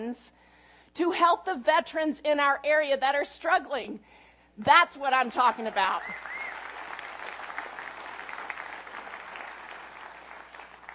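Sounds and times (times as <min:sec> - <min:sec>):
speech: 0:00.0 - 0:06.4
audience clapping: 0:05.3 - 0:10.9.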